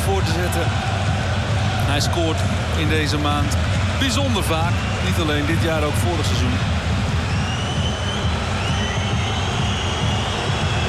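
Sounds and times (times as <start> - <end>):
speech: 0.4 - 1.0, 1.9 - 6.8
football fans whistling in stadium: 4.4 - 6.3, 7.0 - 10.8.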